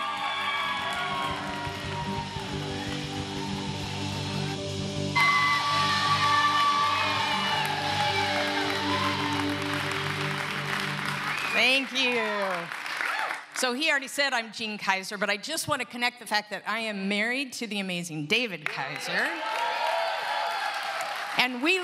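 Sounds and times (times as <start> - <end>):
audience applause welcoming a speaker: 0.0 - 13.6, 18.7 - 21.8
speech: 13.6 - 19.5, 21.4 - 21.8.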